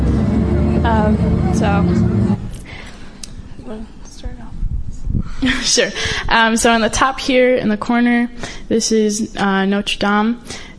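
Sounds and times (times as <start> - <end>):
crowd chatter at the sparkling Eiffel Tower in Paris: 0.0 - 2.7
passing vehicles at the Eiffel Tower in Paris: 0.0 - 3.0
speech: 1.1 - 2.1, 3.7 - 4.4, 5.2 - 10.7.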